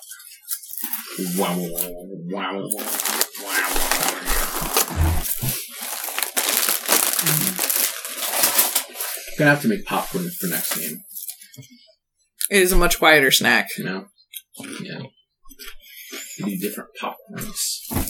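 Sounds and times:
crunching sour cream and onion potato chips: 0.0 - 1.9, 2.7 - 9.3
speech: 1.2 - 3.5, 7.2 - 7.7, 9.4 - 11.9, 12.5 - 15.8, 16.4 - 18.0.

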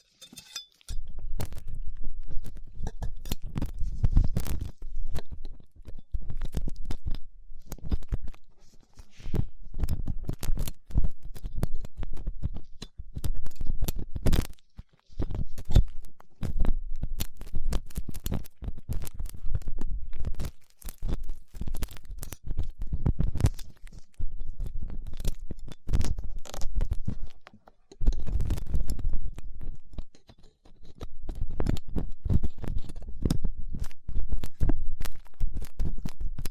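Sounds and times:
ear cleaning scratching and rubbing with latex gloves, dental pick and cotton swabs: 0.0 - 36.4.

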